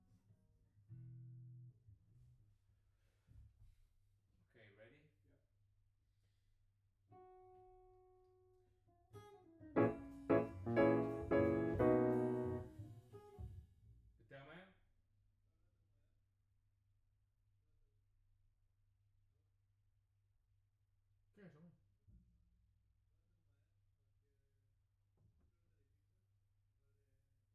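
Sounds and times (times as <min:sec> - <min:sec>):
piano note B: 0:09.8 - 0:12.8.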